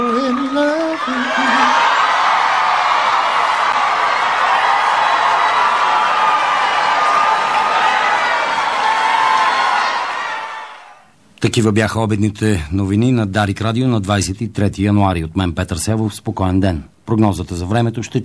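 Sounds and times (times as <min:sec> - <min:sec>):
large crowd cheering and applauding: 0:00.0 - 0:11.1
speech: 0:11.4 - 0:18.2.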